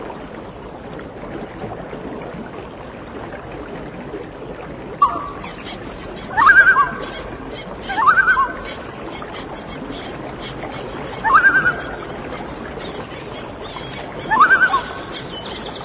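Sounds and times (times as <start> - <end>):
birds: 5.0 - 15.8.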